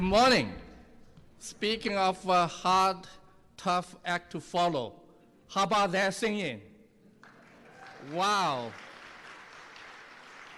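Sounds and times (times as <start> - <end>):
speech: 0.0 - 0.6, 1.4 - 6.7, 8.0 - 8.8
audience applause: 7.2 - 10.5.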